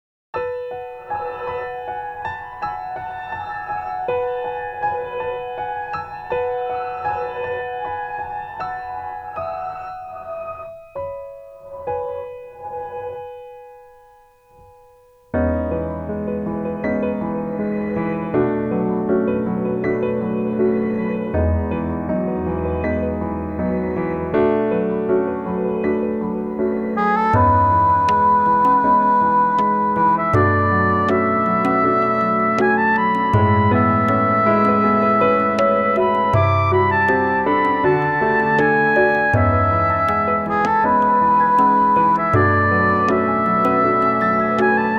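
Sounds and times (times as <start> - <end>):
instrumental music: 0.4 - 44.9.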